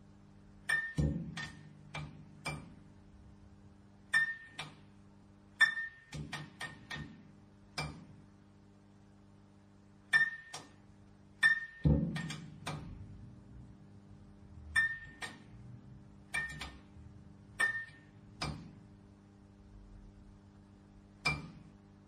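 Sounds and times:
fluorescent lamp clicking: 0.6 - 2.9, 4.0 - 8.2, 10.0 - 13.1, 14.7 - 15.6, 16.3 - 18.9, 21.2 - 21.7.

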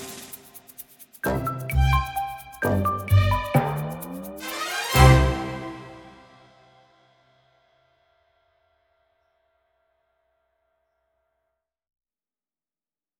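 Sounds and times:
cheerful children's comedy music: 1.2 - 6.4.

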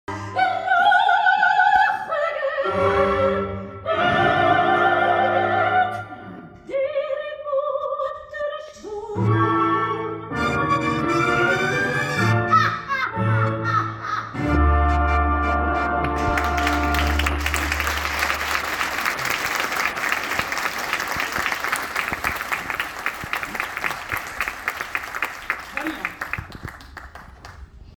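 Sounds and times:
theatre music: 0.1 - 7.6, 8.7 - 26.4
theatre applause: 16.0 - 27.9.

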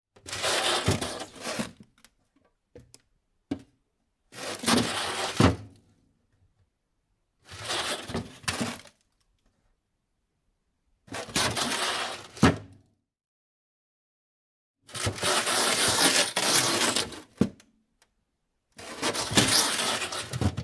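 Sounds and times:
refrigerator: 0.2 - 1.9, 4.3 - 5.9, 7.4 - 9.0, 11.0 - 12.8, 14.9 - 17.6, 18.8 - 20.6.

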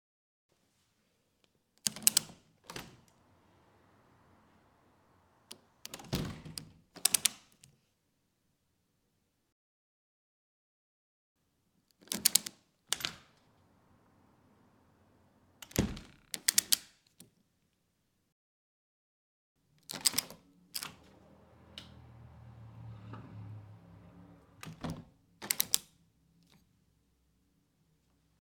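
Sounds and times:
plastic doors opening and closing: 1.9 - 7.5, 12.0 - 16.8, 19.8 - 26.6.

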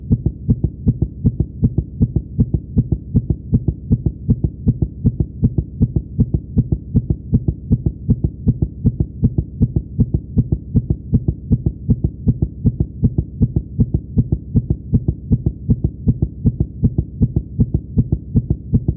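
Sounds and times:
heartbeat: 0.0 - 18.9.

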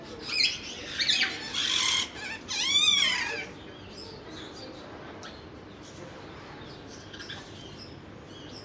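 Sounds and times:
parrots in a pet shop: 0.3 - 3.6.

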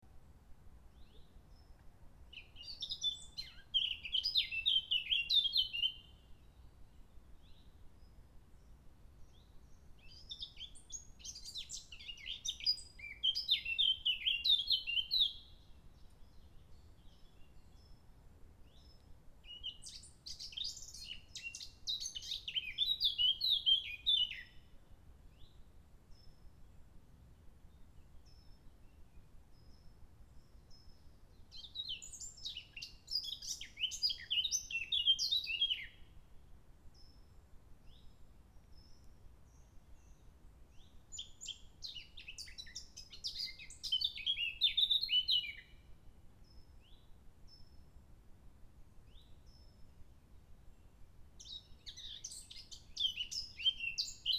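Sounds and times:
blackcap singing: 2.3 - 6.0, 10.1 - 15.6, 18.6 - 24.6, 31.5 - 36.0, 40.8 - 45.7, 51.4 - 54.3.

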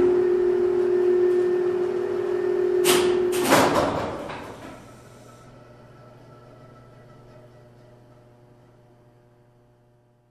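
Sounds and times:
freight elevator doors opening and closing: 0.5 - 8.3.

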